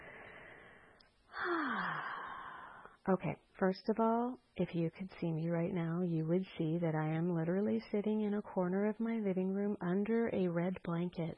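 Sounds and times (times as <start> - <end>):
deep breath: 0.0 - 3.0
speech: 3.1 - 11.3.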